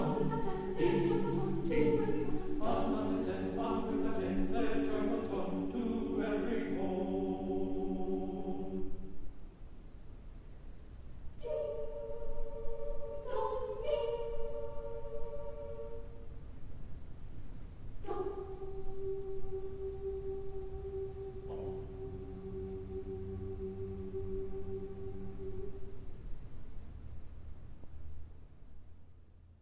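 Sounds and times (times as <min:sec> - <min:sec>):
choir singing a carol: 0:00.0 - 0:09.2, 0:11.4 - 0:16.3, 0:18.0 - 0:26.1.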